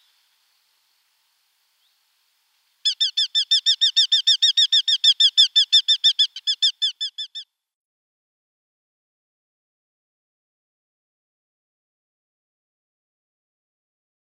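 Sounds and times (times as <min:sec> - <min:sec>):
Eurasian hobby uttering evenly spaced shrill notes: 0:02.8 - 0:07.5.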